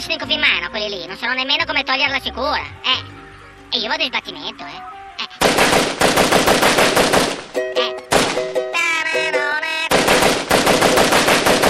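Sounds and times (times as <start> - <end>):
speech: 0.0 - 5.3
machine gun fire: 5.4 - 8.6, 9.9 - 11.6.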